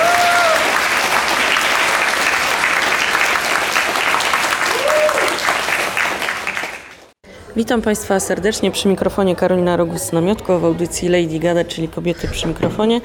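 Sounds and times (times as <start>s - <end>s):
applause: 0.0s - 7.2s
speech: 7.6s - 13.0s.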